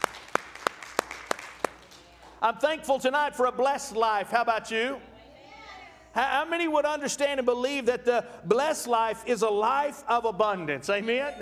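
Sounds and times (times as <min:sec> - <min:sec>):
audience hand clapping: 0:00.0 - 0:02.4
speech: 0:02.4 - 0:05.1, 0:06.1 - 0:11.3.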